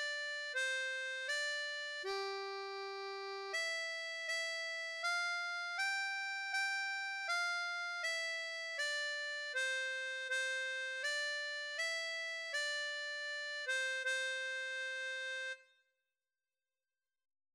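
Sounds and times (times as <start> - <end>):
harmonica melody in G: 0.0 - 15.6.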